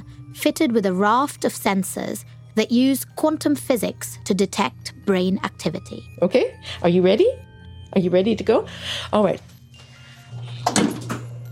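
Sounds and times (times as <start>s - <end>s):
speech: 0.4s - 9.5s
door being shut: 10.5s - 11.4s.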